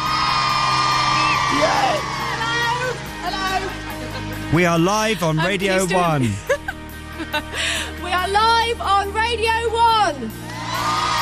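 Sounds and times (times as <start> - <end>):
crowd cheering: 0.0 - 4.4, 10.4 - 11.2
laughter: 3.2 - 4.7, 5.7 - 7.9
speech: 4.5 - 6.5, 7.3 - 11.2.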